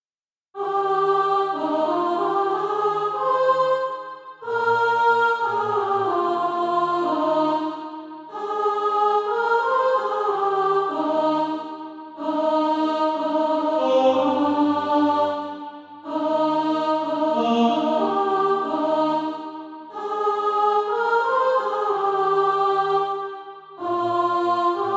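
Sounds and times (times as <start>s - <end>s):
alto voice singing SATB practice music: 0.6s - 24.9s.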